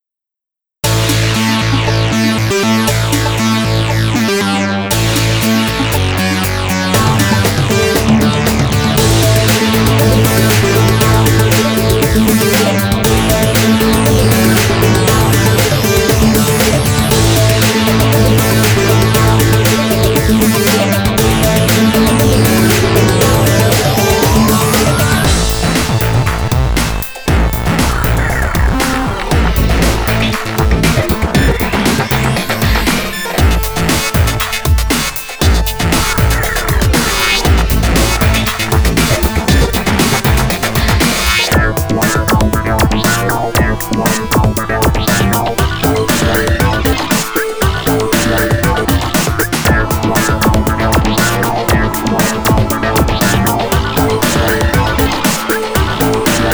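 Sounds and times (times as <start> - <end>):
bit-crushed beat: 0.8 - 56.5.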